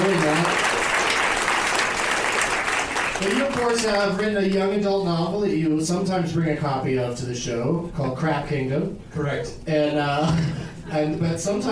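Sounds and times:
audience applause: 0.0s - 4.3s
speech: 3.2s - 11.6s.

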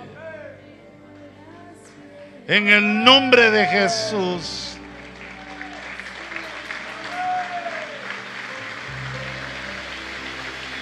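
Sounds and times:
speech: 2.5s - 4.7s
audience applauding: 2.5s - 10.8s.

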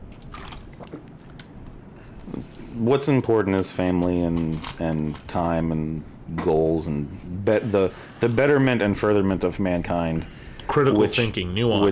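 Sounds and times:
constant hiss: 0.0s - 11.9s
person gulping alkaline water: 0.1s - 1.6s
speech: 2.3s - 11.9s.

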